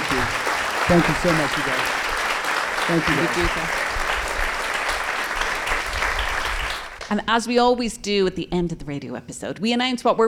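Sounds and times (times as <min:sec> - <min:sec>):
audience round of applause: 0:00.0 - 0:07.1
speech: 0:00.9 - 0:02.0, 0:02.9 - 0:03.8, 0:07.1 - 0:10.2.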